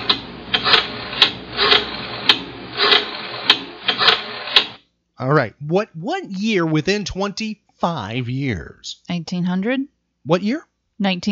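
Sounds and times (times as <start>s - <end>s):
rotary phone dialing: 0.0s - 4.8s
speech: 5.2s - 11.3s.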